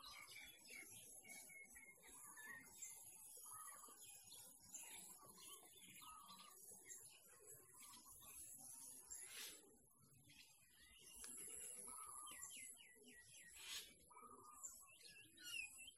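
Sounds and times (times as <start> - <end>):
birds chirping: 0.0 - 15.9.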